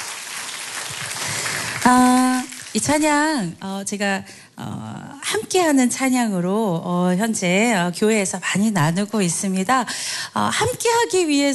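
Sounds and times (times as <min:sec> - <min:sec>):
audience applause: 0:00.0 - 0:02.8
speech: 0:01.8 - 0:11.5.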